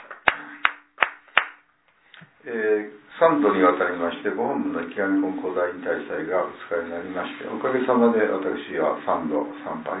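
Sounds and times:
group clapping in unison: 0:00.0 - 0:01.6
speech: 0:02.4 - 0:09.9.

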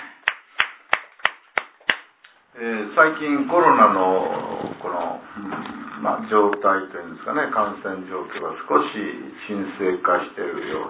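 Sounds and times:
hand clapping in celebration of a 20th birthday: 0:00.0 - 0:02.1
speech: 0:02.6 - 0:10.8.

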